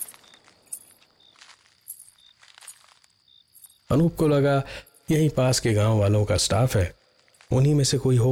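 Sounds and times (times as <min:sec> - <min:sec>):
soft footsteps crunching through dry leaves: 0:00.0 - 0:03.7
anklet bells jingling on the feet: 0:00.0 - 0:05.9
faint high-pitched insect hum: 0:00.0 - 0:08.3
speech: 0:03.9 - 0:08.3.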